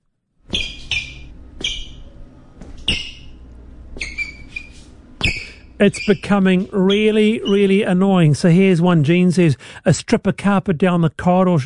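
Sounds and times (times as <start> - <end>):
shoes squeaking on office hall floor: 0.4 - 7.9
speech: 5.8 - 11.6.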